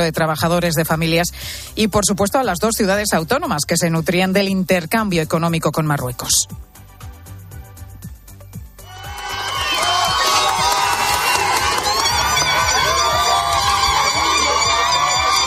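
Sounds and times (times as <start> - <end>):
speech: 0.0 - 6.7
applause of hundreds of people gathered at the border: 8.8 - 15.4.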